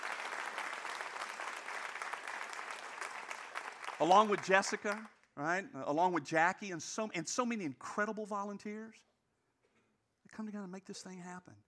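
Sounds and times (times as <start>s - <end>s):
crowd applauding: 0.0s - 5.1s
speech: 4.0s - 9.1s, 10.3s - 11.6s.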